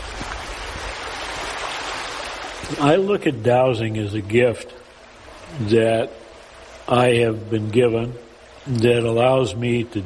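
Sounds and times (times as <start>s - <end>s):
small brook flowing: 0.0s - 3.0s
speech: 2.7s - 4.8s, 5.5s - 6.2s, 6.9s - 10.0s.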